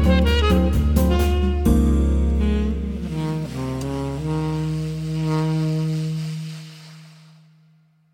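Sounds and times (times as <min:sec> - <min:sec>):
tenor saxophone: 0:00.0 - 0:07.2.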